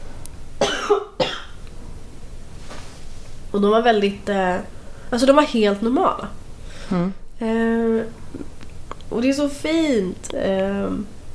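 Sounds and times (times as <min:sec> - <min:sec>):
person coughing: 0:00.6 - 0:01.5
speech: 0:00.9 - 0:01.2, 0:03.5 - 0:08.5, 0:09.1 - 0:11.2.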